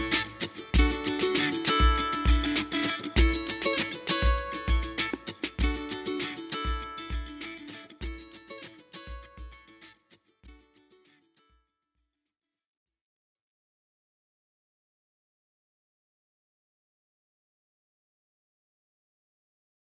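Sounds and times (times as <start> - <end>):
acoustic jam: 0.0 - 9.9.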